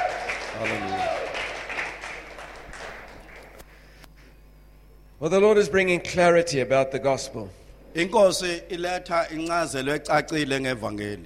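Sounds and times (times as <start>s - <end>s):
audience clapping: 0.0s - 3.8s
speech: 0.6s - 1.2s, 5.2s - 11.2s.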